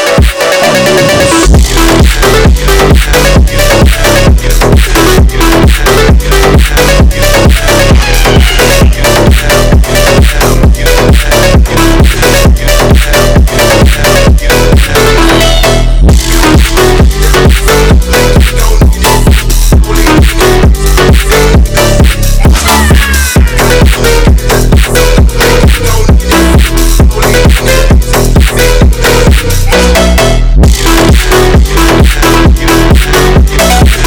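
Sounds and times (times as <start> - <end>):
phonk remix music: 0.0 - 34.0.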